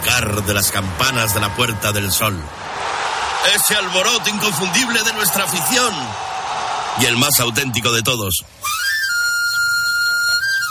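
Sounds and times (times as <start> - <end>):
speech: 0.2 - 6.3, 7.0 - 8.8
knife grinder's panpipe whistle: 8.6 - 10.6.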